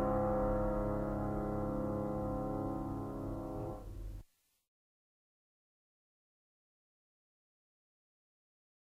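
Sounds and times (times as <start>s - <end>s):
piano prelude in a minor key: 0.0s - 4.2s.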